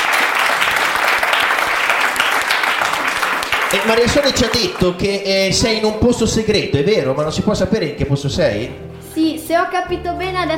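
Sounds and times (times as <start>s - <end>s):
crowd applauding: 0.0s - 6.2s
speech: 3.7s - 10.5s.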